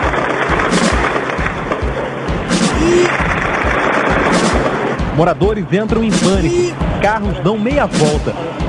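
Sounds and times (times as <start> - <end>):
rapid gunfire: 0.0 - 5.2
high whine: 0.0 - 8.6
speech: 5.2 - 8.6.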